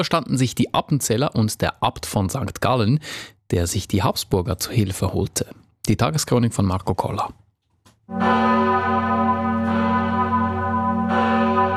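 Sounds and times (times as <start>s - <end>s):
speech: 0.0s - 7.4s, 8.1s - 9.0s
large bell of the parish church in Appenzell ringing: 8.1s - 11.7s.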